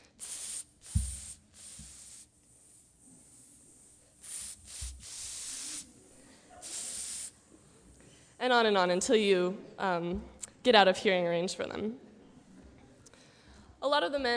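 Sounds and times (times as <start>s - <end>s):
people hissing in imitation of catcalls: 0.0s - 7.6s
speech: 8.4s - 12.0s, 13.8s - 14.3s.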